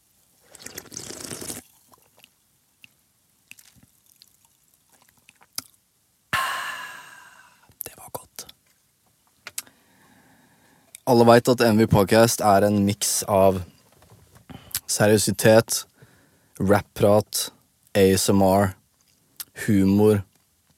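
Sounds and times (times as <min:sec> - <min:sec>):
sipping from a can of energy drink: 0:00.4 - 0:02.3
speech: 0:11.1 - 0:13.7, 0:15.0 - 0:15.9, 0:16.6 - 0:18.8, 0:19.6 - 0:20.3.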